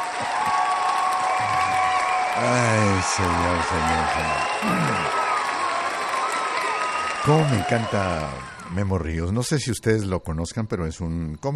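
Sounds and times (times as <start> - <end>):
audience applause and cheering as a comedian is introduced: 0.0 - 9.2
speech: 2.4 - 5.2, 7.2 - 11.5.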